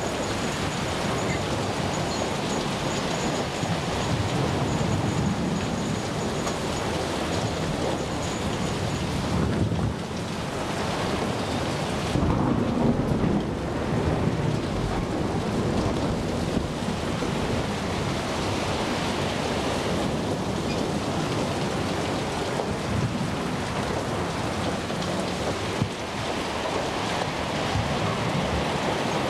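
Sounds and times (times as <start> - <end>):
sea storm ambience: 0.0 - 29.2.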